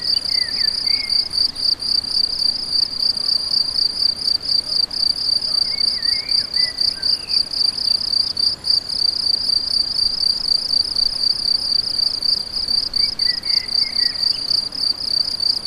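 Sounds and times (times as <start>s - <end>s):
crickets trilling: 0.0s - 15.6s.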